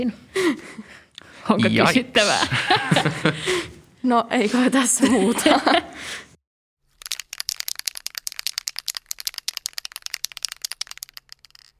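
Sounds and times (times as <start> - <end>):
speech: 0.0 - 6.2
laughter: 1.7 - 3.8, 5.0 - 6.0
spray paint can hissing: 7.0 - 11.7.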